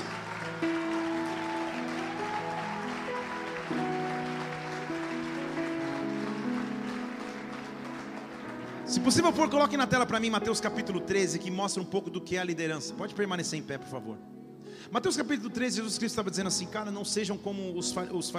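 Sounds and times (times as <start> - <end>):
audience applause: 0.0 - 9.5
sustained keyboard chords: 0.0 - 18.3
speech: 9.0 - 18.3.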